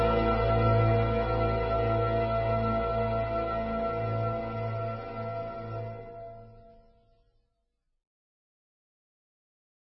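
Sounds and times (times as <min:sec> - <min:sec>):
expressive suspense music: 0:00.0 - 0:06.9.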